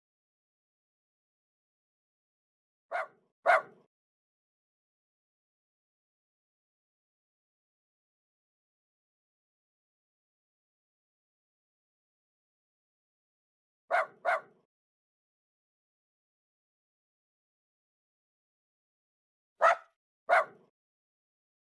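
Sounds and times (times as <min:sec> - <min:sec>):
dog barks: 0:02.9 - 0:03.9, 0:13.9 - 0:14.6, 0:19.6 - 0:20.7.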